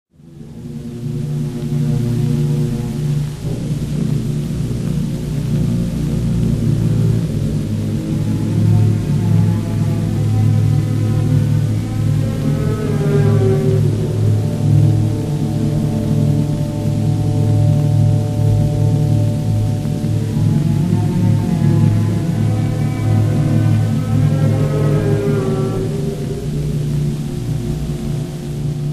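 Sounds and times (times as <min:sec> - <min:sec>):
orchestral piece in D minor: 0:00.5 - 0:28.9.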